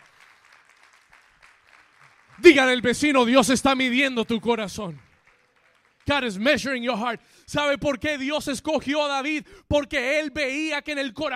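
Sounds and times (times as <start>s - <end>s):
audience applause: 0.0s - 6.4s
speech: 2.4s - 5.0s, 6.1s - 11.3s.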